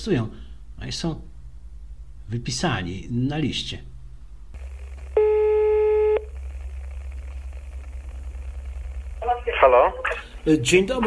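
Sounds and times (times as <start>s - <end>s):
speech: 0.0s - 1.3s, 2.3s - 3.9s, 9.6s - 11.0s
telephone line ringing during a call: 5.2s - 6.3s.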